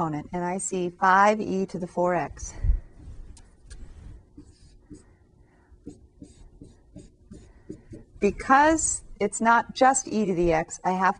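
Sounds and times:
speech: 0.0s - 2.8s, 8.2s - 11.1s
pen scratching on paper writing a math expression: 3.7s - 5.2s, 5.8s - 8.7s.

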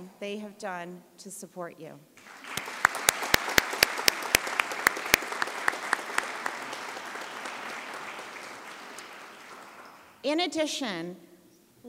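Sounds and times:
speech: 0.2s - 2.4s, 10.2s - 11.8s
large audience applauding at graduation ceremony: 2.2s - 10.2s.

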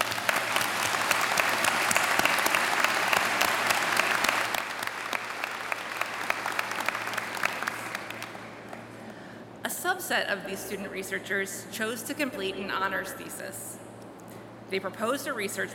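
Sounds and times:
applause: 0.0s - 9.0s
speech: 10.1s - 13.8s, 14.7s - 15.7s.

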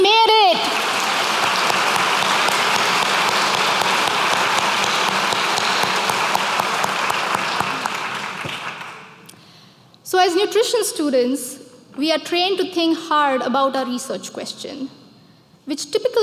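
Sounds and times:
audience applause: 0.5s - 9.2s
speech: 10.3s - 15.0s, 15.7s - 16.2s.

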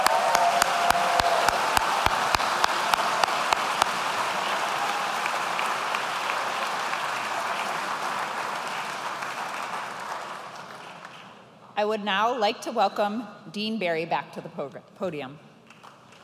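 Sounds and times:
audience applause for doctoral degree candidates: 0.0s - 11.4s
speech: 11.8s - 15.5s.

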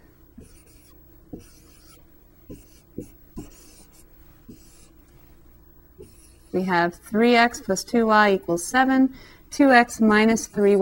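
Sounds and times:
pen scratching while writing an augmented matrix: 0.4s - 4.9s, 6.0s - 6.6s
speech: 6.6s - 10.8s.

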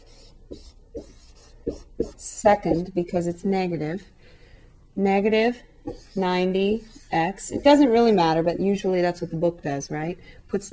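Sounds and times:
writing strokes on a board during a math lesson: 0.0s - 2.9s, 5.8s - 8.1s
speech: 2.4s - 4.2s, 5.0s - 10.7s.

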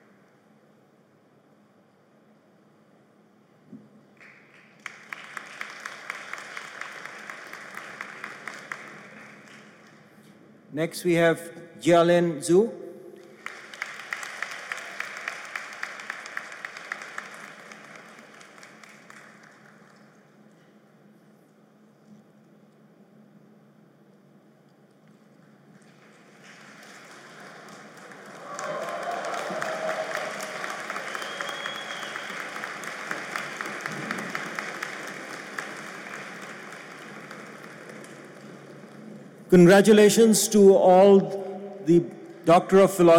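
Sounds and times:
audience applause at graduation ceremony: 4.2s - 10.0s, 13.3s - 20.2s, 25.8s - 39.3s
speech: 10.8s - 12.8s, 39.6s - 43.1s.

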